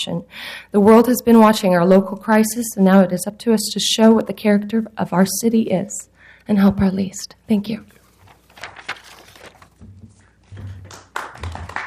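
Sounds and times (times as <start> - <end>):
speech: 0.0 - 8.0
audience clapping: 10.5 - 11.8.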